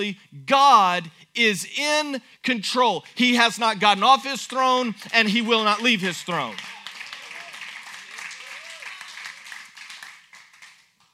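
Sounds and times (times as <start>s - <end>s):
speech: 0.0s - 6.8s
crowd applause: 5.1s - 11.0s.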